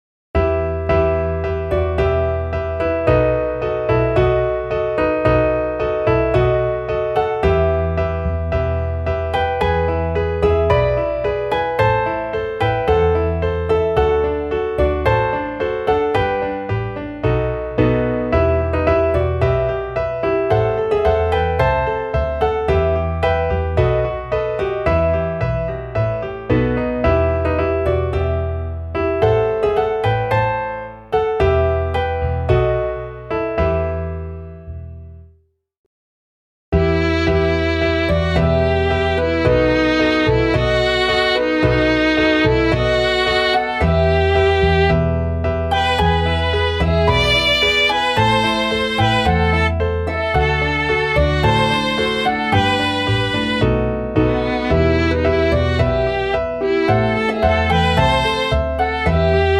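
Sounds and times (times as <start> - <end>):
piano: 0.3 - 35.5, 36.7 - 59.5.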